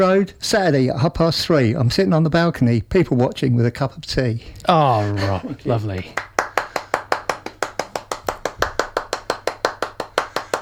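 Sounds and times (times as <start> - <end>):
speech: 0.0 - 6.3
single pair of hands clapping slowly: 6.0 - 10.6.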